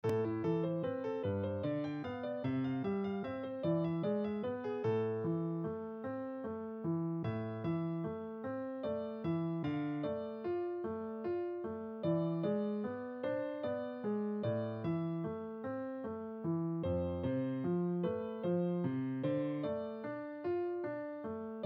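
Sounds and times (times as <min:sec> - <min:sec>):
piano: 0:00.0 - 0:21.6.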